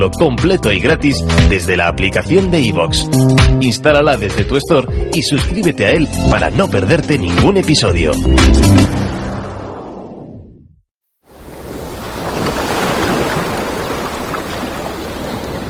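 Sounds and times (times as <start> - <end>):
speech: 0.0 - 9.1
ocean waves: 11.3 - 15.6.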